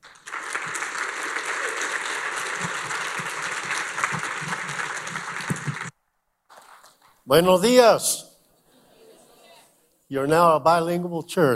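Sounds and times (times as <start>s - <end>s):
church congregation clapping to welcome a pastor: 0.0s - 7.7s
speech: 7.3s - 8.2s, 10.1s - 11.5s.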